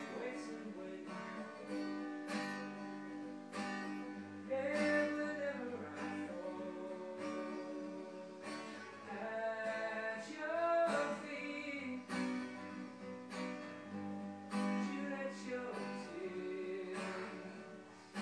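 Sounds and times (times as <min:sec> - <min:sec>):
person singing: 0:00.0 - 0:13.0, 0:14.5 - 0:18.1.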